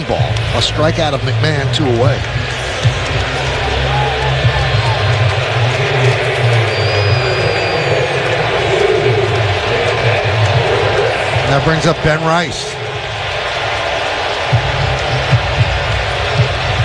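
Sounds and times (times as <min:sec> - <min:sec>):
stadium crowd buzz: 0:00.0 - 0:16.8
speech: 0:00.1 - 0:03.5, 0:11.5 - 0:12.8.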